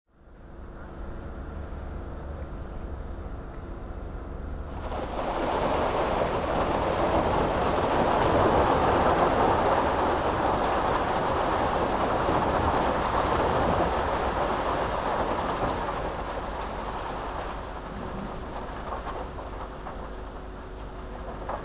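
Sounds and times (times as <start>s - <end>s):
construction work at a lycée: 4.6s - 21.6s.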